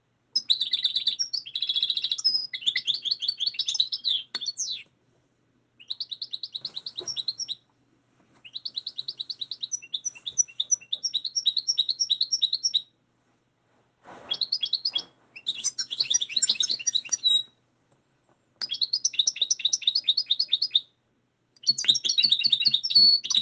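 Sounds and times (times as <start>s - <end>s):
goldfinches twittering: 0.4s - 4.9s, 5.8s - 7.6s, 8.4s - 12.9s, 14.3s - 17.5s, 18.6s - 20.9s, 21.6s - 23.4s.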